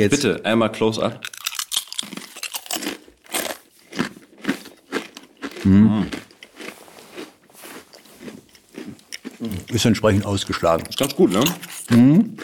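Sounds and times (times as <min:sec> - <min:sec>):
speech: 0:00.0 - 0:01.4, 0:05.6 - 0:06.3, 0:09.4 - 0:12.4
biting and chewing salty crispbread: 0:01.2 - 0:12.4
low voice murmur: 0:05.6 - 0:06.1.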